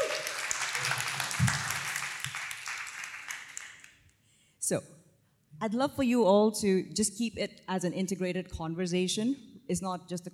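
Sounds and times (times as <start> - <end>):
audience applause: 0.0 - 3.9
speech: 4.7 - 4.9, 5.6 - 10.3.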